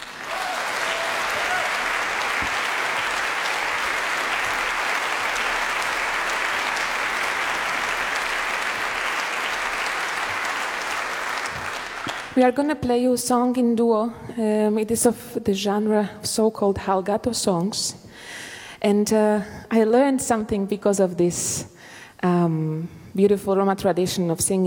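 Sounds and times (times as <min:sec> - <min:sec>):
audience applause: 0:00.0 - 0:12.4
speech: 0:12.4 - 0:24.6.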